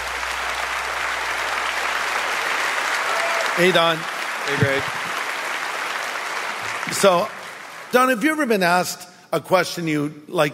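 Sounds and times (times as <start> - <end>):
audience applause greeting a Bible scholar as guest: 0.0 - 8.2
speech: 3.6 - 5.1, 6.9 - 10.5.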